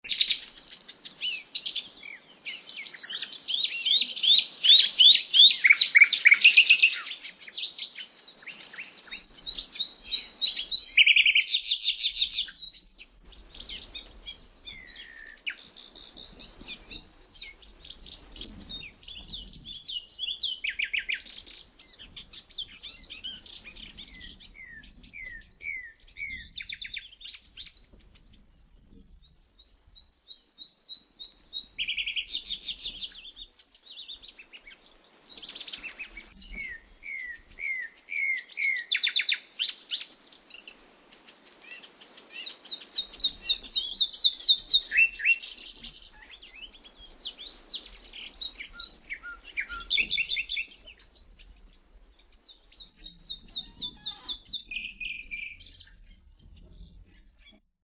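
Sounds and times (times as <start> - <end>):
nightingales singing on the Ili river: 0.1 - 28.0, 29.6 - 57.4.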